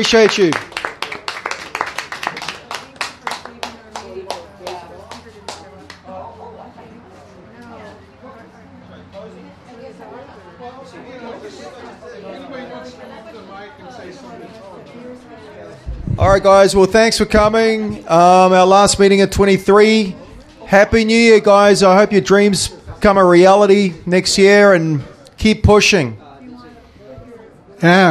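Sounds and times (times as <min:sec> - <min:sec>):
speech: 0:00.0 - 0:00.7, 0:16.4 - 0:26.2, 0:27.8 - 0:28.0
audience applause: 0:00.0 - 0:04.8
murmur of many people talking: 0:00.0 - 0:28.0.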